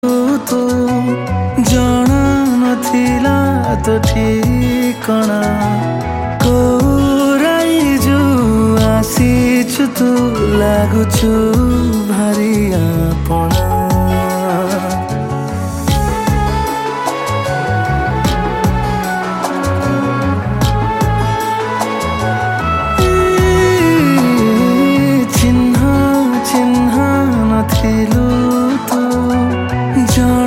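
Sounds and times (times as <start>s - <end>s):
Odia song: 0.0s - 30.4s.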